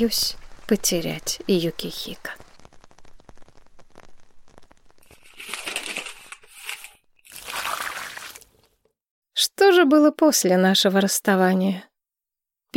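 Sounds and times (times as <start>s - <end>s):
speech: 0.0s - 2.4s, 9.6s - 11.9s
slanting rain: 0.0s - 8.8s.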